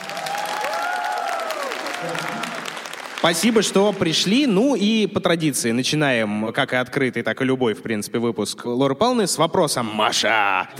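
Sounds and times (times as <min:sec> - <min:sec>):
voices whooping and cheering: 0:00.0 - 0:02.8
audience clapping: 0:00.0 - 0:04.8
speech: 0:03.2 - 0:10.7.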